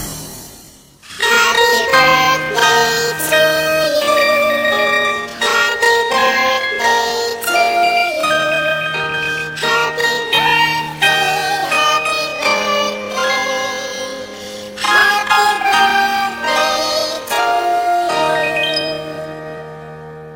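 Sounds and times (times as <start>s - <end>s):
chipmunk voices singing: 1.1s - 8.9s, 9.6s - 19.1s.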